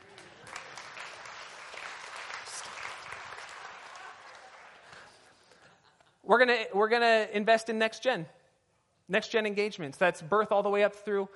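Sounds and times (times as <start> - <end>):
audience clapping: 0.0 - 5.6
speech: 6.3 - 8.4, 9.1 - 11.3.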